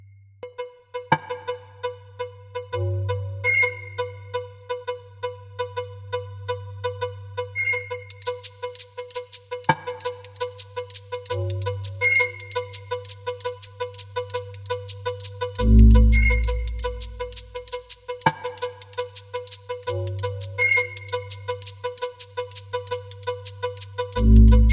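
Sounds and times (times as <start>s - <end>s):
bells: 0.4s - 24.7s
whistles: 3.4s - 4.4s, 7.6s - 8.4s, 12.0s - 13.0s, 16.0s - 17.4s, 20.6s - 21.6s.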